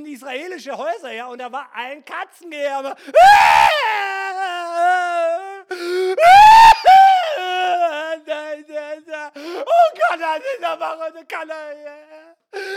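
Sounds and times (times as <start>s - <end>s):
speech: 0.1s - 4.2s, 10.1s - 12.7s
voice imitating loud wailing mourning screams: 3.2s - 8.1s.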